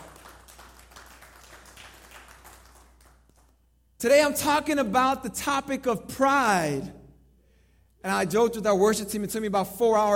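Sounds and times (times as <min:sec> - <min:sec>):
audience clapping: 0:00.0 - 0:03.6
speech: 0:04.0 - 0:07.0, 0:08.0 - 0:10.1.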